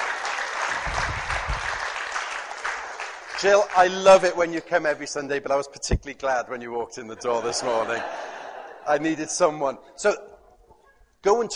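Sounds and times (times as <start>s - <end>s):
room full of people clapping: 0.0s - 4.6s
speech: 3.4s - 10.3s, 11.2s - 11.5s
laughter: 7.1s - 9.3s.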